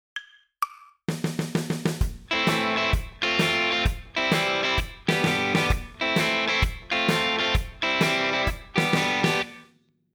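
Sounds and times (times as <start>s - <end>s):
rock guitar chords: 2.0s - 9.6s.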